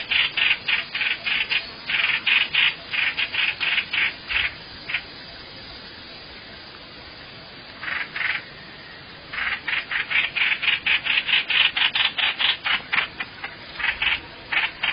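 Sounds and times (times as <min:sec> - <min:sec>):
bird rasping calls: 0:00.0 - 0:05.1, 0:07.8 - 0:08.5, 0:09.3 - 0:14.9.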